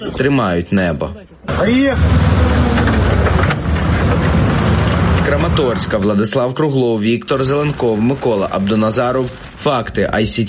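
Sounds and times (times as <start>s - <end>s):
speech: 0.0s - 2.8s, 5.2s - 10.4s
car driving past: 1.5s - 6.1s.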